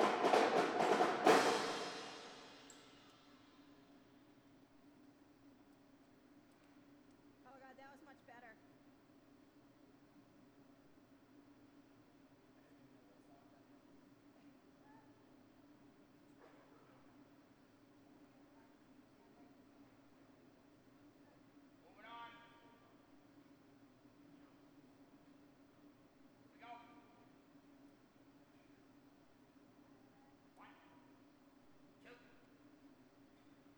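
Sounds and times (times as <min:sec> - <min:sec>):
marching drum solo: 0:00.0 - 0:02.7.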